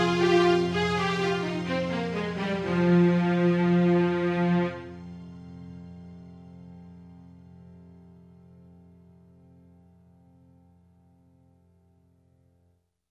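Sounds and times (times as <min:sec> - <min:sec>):
piano piece: 0:00.0 - 0:05.1.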